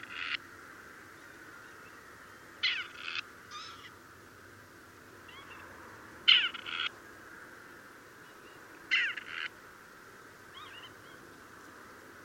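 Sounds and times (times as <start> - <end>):
Grey partridge giving harsh grating rasped calls: 2.6 - 4.0, 6.3 - 6.9, 8.9 - 9.5.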